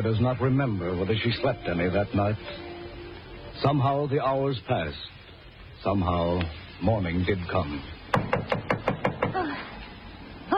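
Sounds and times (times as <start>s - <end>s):
speech: 0.0s - 2.8s, 3.6s - 5.2s, 5.8s - 8.0s
Coast Guard officer knocking on a front door: 8.1s - 9.4s.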